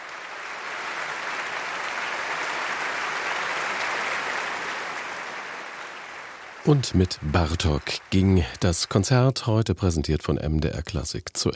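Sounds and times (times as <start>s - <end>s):
audience applause for an orchestra and its conductor: 0.0s - 9.2s
speech: 6.6s - 11.5s.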